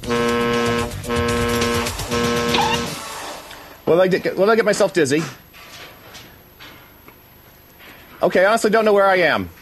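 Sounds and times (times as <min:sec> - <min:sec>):
car horn honking on a fixed beacon: 0:00.0 - 0:03.0
speech: 0:03.9 - 0:05.4, 0:08.2 - 0:09.5.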